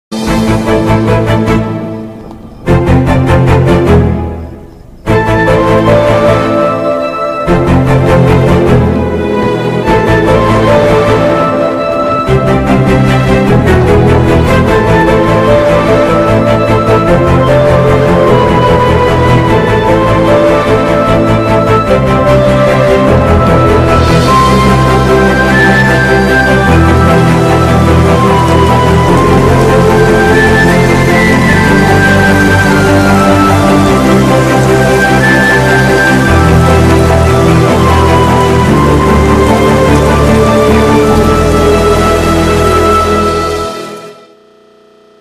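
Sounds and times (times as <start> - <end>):
romantic background music ringtone: 0.2 - 45.1.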